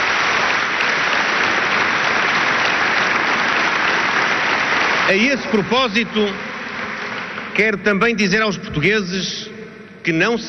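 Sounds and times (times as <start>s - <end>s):
Congress audience applauding: 0.0s - 8.3s
speech: 5.1s - 6.5s, 7.6s - 10.4s.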